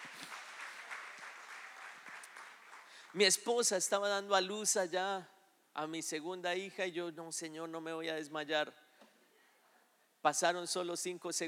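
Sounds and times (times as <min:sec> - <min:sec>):
audience applause: 0:00.0 - 0:03.2
speech: 0:03.1 - 0:08.8, 0:10.2 - 0:11.4.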